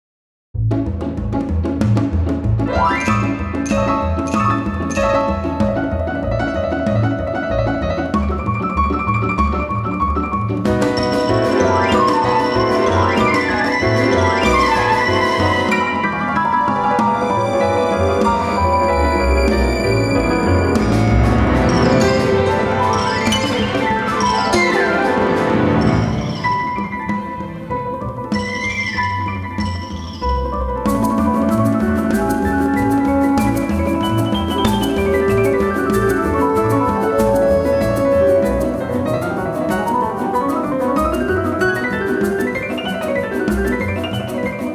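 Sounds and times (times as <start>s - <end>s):
Romanian folk music variation: 1.4s - 44.7s.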